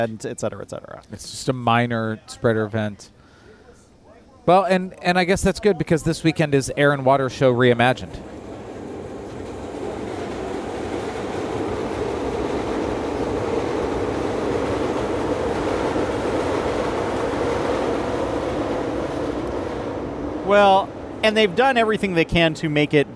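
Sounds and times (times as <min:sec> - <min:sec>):
speech: 0:00.0 - 0:03.2, 0:04.5 - 0:08.4, 0:20.5 - 0:23.1
train rumbling on rails: 0:07.6 - 0:23.1.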